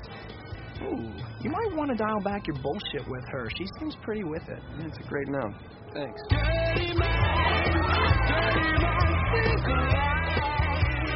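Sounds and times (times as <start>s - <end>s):
speech: 0.8s - 10.5s
cheering and whooping: 7.0s - 9.9s.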